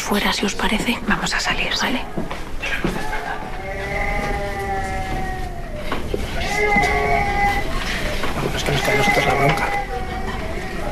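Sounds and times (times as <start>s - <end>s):
speech: 0.1s - 3.0s
baby crying after waking up: 2.7s - 10.9s.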